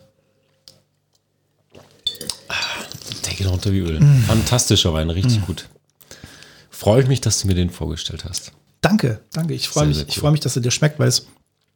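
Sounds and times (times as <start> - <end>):
wine glasses clinking in a toast: 2.0 - 3.0
speech: 3.4 - 5.8, 6.8 - 11.4.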